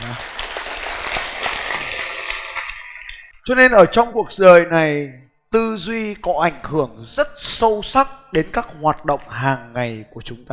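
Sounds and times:
audience applause: 0.0 - 3.3
speech: 3.4 - 10.5.

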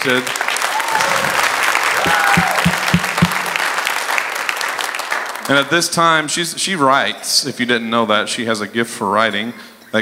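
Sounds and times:
speech: 0.0 - 1.1, 5.5 - 10.0
audience clapping: 0.0 - 5.7.

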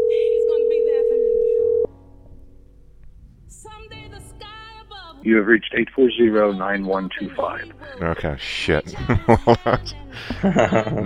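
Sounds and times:
telephone dial tone while calling a cell phone: 0.0 - 1.9
speech: 5.2 - 11.0
laughter: 8.0 - 11.0.

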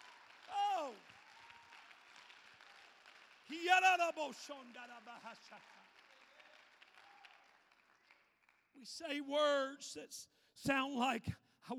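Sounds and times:
audience applause: 0.0 - 8.6
speech: 3.5 - 5.8, 8.8 - 11.7.

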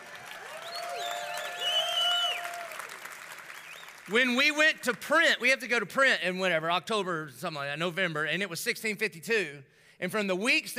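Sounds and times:
audience applause: 0.0 - 4.6
speech: 4.1 - 10.7.

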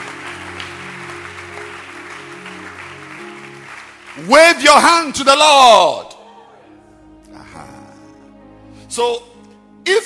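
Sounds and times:
audience clapping hands: 0.0 - 5.4
speech: 4.2 - 6.1, 9.0 - 10.0.

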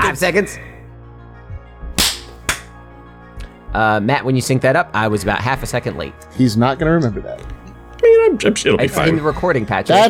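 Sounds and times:
speech: 0.1 - 0.8, 3.7 - 7.6, 8.2 - 10.0
hand claps for audio sync: 2.0 - 2.8.

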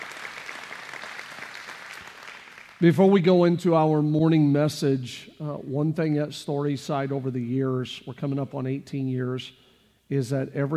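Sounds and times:
church congregation applauding to welcome online viewers: 0.0 - 2.9
speech: 2.8 - 10.7.

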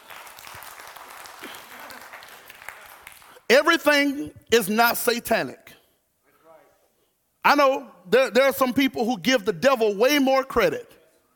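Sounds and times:
people clapping: 0.0 - 3.5
speech: 3.5 - 5.7, 7.4 - 11.0.

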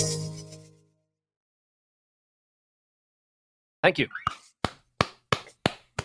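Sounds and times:
speech: 3.9 - 4.4
hand clapping: 4.3 - 6.0.

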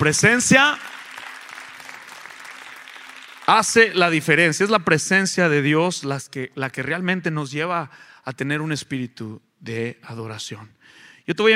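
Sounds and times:
speech: 0.0 - 0.9, 3.5 - 11.5
audience applause: 0.0 - 4.0.

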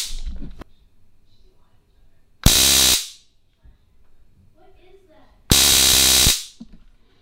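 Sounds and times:
stun gun electrical arcing crackle: 2.4 - 3.3, 5.5 - 6.6.

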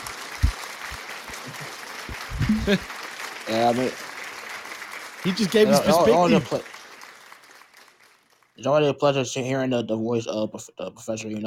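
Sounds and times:
fans clapping: 0.0 - 8.5
crowd murmur: 1.4 - 2.9, 5.4 - 6.6
laughter: 1.5 - 2.9, 5.3 - 6.7
voice rising: 2.1 - 2.8
speech: 2.5 - 4.1, 5.2 - 6.7, 8.6 - 11.4.

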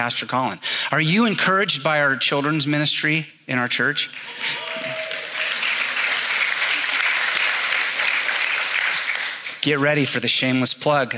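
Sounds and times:
speech: 0.0 - 4.9, 9.6 - 11.1
audience clapping: 4.1 - 10.1.

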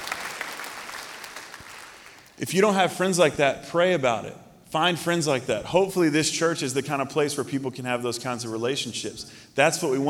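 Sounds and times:
audience clapping: 0.0 - 2.4
speech: 2.4 - 10.0.

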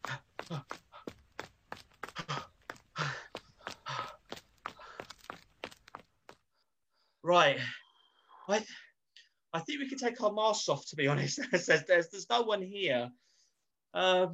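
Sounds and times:
people running footsteps while escaping: 0.0 - 6.4
speech: 7.3 - 7.8, 8.5 - 8.9, 9.5 - 13.2, 13.9 - 14.3.

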